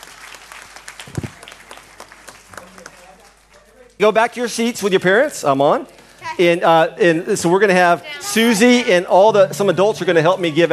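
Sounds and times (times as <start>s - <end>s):
children clapping hands: 0.0s - 3.7s
speech: 4.0s - 10.7s.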